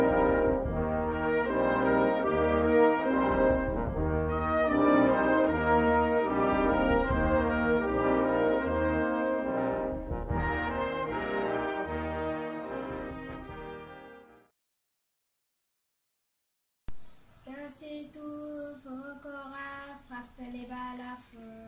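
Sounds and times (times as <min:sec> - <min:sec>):
national anthem: 0:00.0 - 0:14.5.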